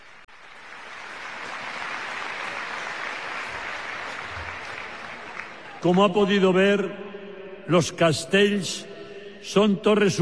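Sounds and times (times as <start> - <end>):
crowd applause for La Colla Castellera de Vilafranca del Penedès: 0.0 - 6.2
speech: 5.8 - 7.0, 7.7 - 10.2.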